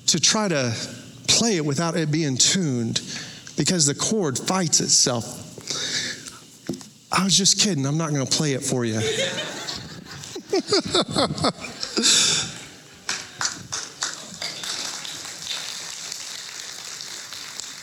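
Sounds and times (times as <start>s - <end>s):
speech: 0.1s - 6.0s, 6.7s - 9.6s, 10.6s - 12.4s
voices or laughter: 9.0s - 12.6s
audience applause: 11.8s - 17.8s.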